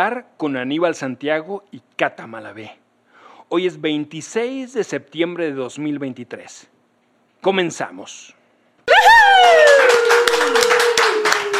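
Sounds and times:
speech: 0.0s - 2.8s, 3.5s - 6.7s, 7.4s - 9.8s
audience applause: 8.9s - 11.5s.

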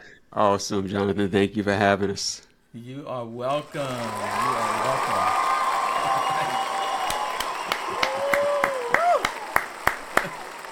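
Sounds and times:
speech: 0.3s - 6.2s
light audience applause for a guest: 3.5s - 10.6s.

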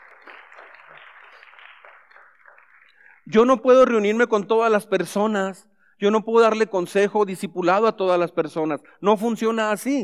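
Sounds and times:
audience applause: 0.0s - 3.3s
speech: 3.3s - 10.0s.

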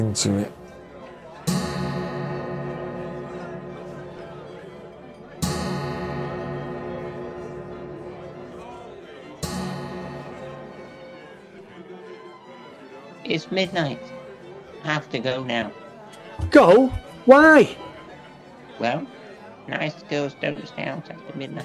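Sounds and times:
speech: 0.0s - 0.6s, 13.3s - 14.2s, 14.8s - 15.8s, 16.4s - 17.9s, 18.8s - 21.6s
clock striking midnight: 1.4s - 11.3s.

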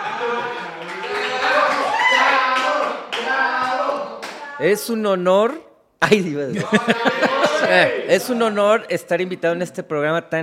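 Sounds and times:
laughter: 0.0s - 2.6s, 6.0s - 8.6s
audience clapping: 0.0s - 4.6s
speech: 4.6s - 10.4s.

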